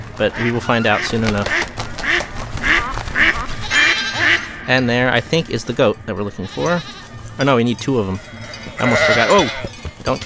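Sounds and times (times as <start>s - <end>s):
duck quacking in a video game: 0.0s - 9.7s
speech: 0.2s - 1.7s, 4.7s - 10.2s.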